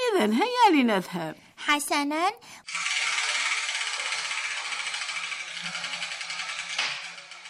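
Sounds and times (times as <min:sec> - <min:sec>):
speech: 0:00.2 - 0:02.8
spinning lottery wheel: 0:02.6 - 0:07.4.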